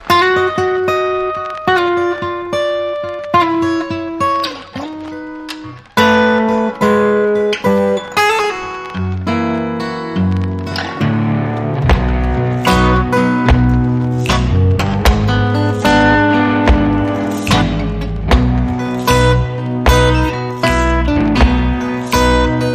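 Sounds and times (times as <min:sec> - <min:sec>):
blues music: 0:00.0 - 0:22.7.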